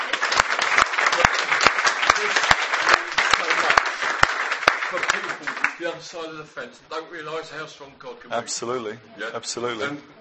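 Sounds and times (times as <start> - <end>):
round of applause: 0.0 - 5.8
speech: 6.0 - 10.1.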